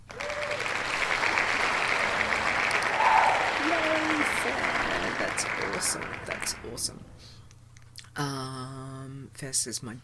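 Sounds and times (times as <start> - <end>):
crowd cheering and applauding: 0.0 - 7.0
speech: 5.8 - 7.4, 8.2 - 10.0.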